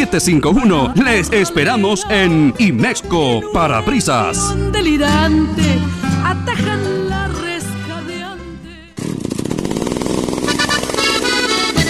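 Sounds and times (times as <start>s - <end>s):
speech: 0.0s - 7.4s
chainsaw engine revving: 9.0s - 11.8s.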